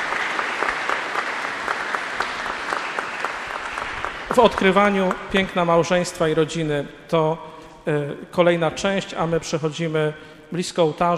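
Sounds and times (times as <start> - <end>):
audience applause: 0.0 - 5.3
speech: 4.4 - 11.1.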